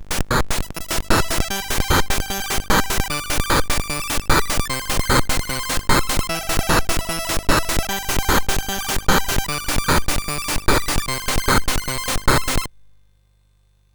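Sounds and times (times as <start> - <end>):
remix on MOS6581R4 SID chip: 0.3 - 12.7.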